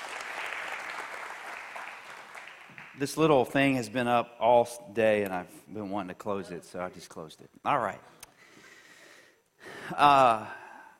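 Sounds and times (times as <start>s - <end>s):
church congregation applauding during a service: 0.0s - 3.4s
speech: 3.0s - 8.2s, 9.9s - 10.6s.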